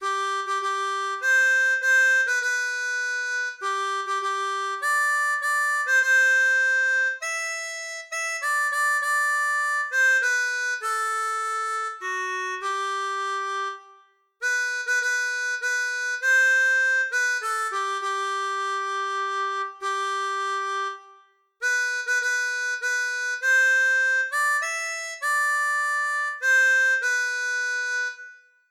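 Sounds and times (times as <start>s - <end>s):
anthem played on harmonica: 0.0s - 28.6s.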